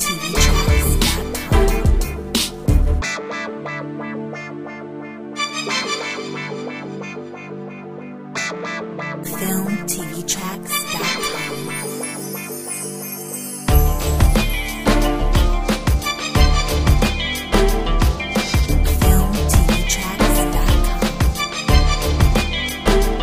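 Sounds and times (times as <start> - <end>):
instrumental hip hop beat: 0.0 - 9.2, 10.8 - 23.2.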